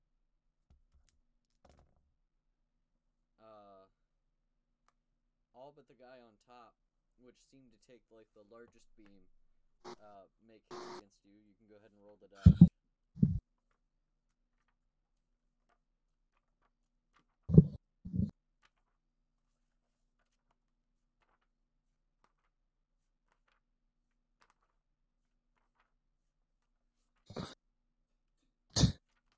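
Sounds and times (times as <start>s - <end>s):
speech: 5.7s - 12.7s
pages flipping: 14.5s - 27.2s, 29.0s - 29.3s.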